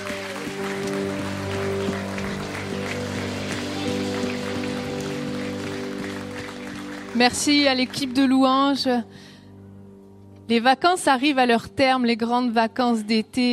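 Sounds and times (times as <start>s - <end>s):
audience cheering and applauding: 0.0s - 8.2s
speech: 7.2s - 9.3s, 10.5s - 13.5s.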